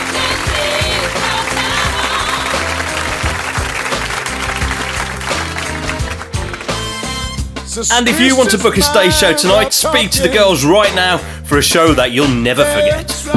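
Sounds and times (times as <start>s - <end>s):
audience round of applause: 0.0s - 7.4s
speech: 7.8s - 13.3s.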